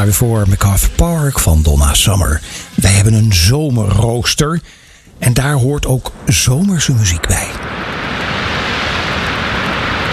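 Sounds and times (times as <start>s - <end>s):
speech: 0.0s - 7.7s
ocean surf washing: 0.0s - 10.1s.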